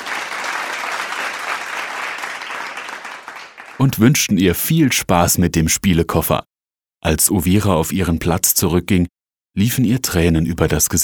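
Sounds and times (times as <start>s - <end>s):
children clapping in a classroom: 0.0s - 3.9s
speech: 3.8s - 11.0s.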